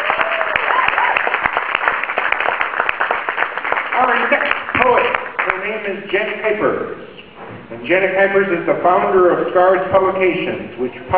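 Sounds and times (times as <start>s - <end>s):
faint whoop or cheer: 0.0s - 1.4s
crowd applause: 0.0s - 5.7s
speech: 7.8s - 11.1s.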